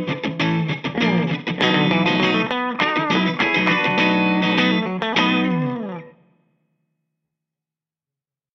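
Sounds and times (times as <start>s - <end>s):
Epiphone Valve Junior valve amplifier clean tone: 0.0s - 6.4s.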